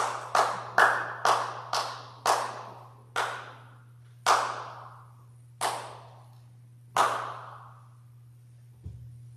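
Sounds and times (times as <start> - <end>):
audience clapping: 0.0 - 3.6, 4.2 - 4.8, 5.6 - 6.0, 6.9 - 7.6.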